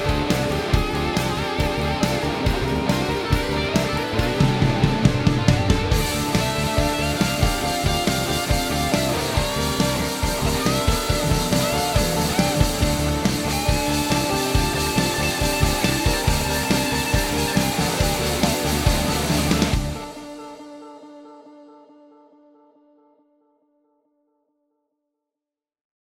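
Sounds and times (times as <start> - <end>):
rock concert: 0.0 - 21.1.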